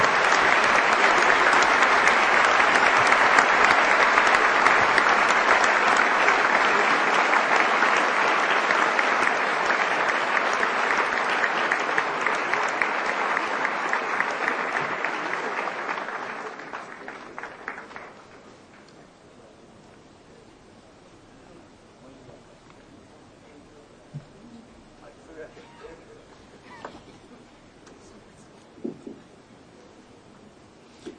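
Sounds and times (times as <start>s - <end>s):
sustained applause from a large audience for panelists: 0.0s - 19.0s.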